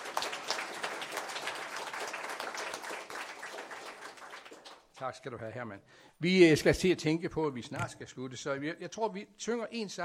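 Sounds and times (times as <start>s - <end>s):
crowd applauding: 0.0s - 5.0s
speech: 5.0s - 10.0s.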